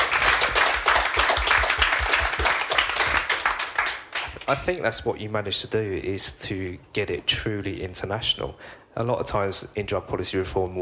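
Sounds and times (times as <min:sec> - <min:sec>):
audience applause: 0:00.0 - 0:04.5
speech: 0:04.5 - 0:10.8.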